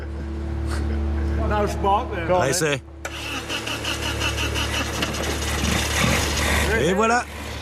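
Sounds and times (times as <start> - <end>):
engine idling: 0.0 - 7.6
speech: 1.5 - 2.9, 6.8 - 7.3.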